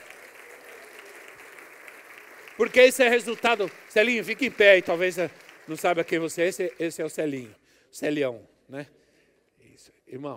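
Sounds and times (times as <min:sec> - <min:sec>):
crowd and audience applauding: 0:00.0 - 0:07.4
speech: 0:02.6 - 0:09.0, 0:09.7 - 0:10.3.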